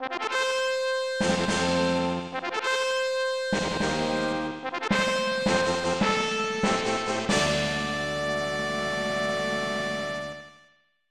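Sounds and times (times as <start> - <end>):
fanfare: 0.0 - 10.5.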